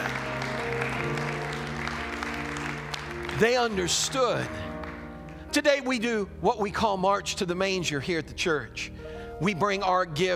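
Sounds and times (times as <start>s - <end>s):
audience clapping hands in praise: 0.0s - 5.7s
held tonal hum of music or organ: 0.0s - 9.8s
speech: 3.4s - 4.7s, 5.5s - 10.3s.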